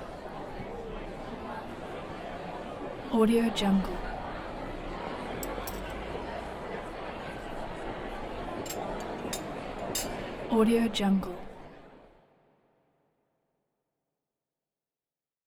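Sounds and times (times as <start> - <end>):
restaurant ambience: 3.3 - 12.0.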